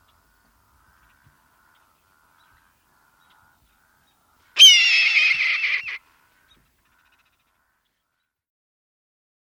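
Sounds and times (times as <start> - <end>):
red-tailed hawk giving a hoarse raspy scream: 4.6 - 6.0.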